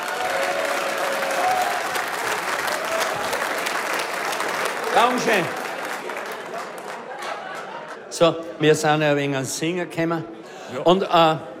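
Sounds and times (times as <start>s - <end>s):
audience applause: 0.0s - 8.1s
speech: 5.0s - 5.6s, 8.2s - 11.5s.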